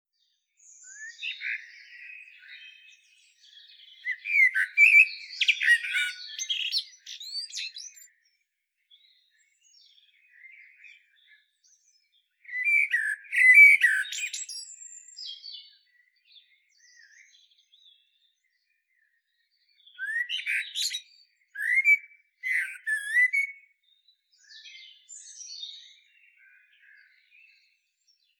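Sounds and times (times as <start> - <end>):
common blackbird song: 0.2 - 28.3.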